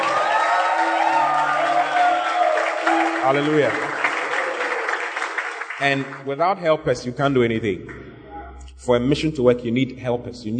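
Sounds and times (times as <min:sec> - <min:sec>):
cheering: 0:00.0 - 0:06.2
applause: 0:00.0 - 0:06.3
speech: 0:03.2 - 0:03.9, 0:05.8 - 0:08.0, 0:08.8 - 0:10.5.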